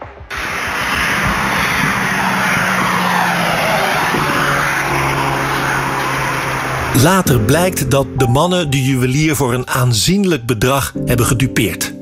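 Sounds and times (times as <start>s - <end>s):
Volkswagen Golf engine roaring speeding off along a ring road: 0.1s - 9.7s
speech: 7.0s - 12.0s.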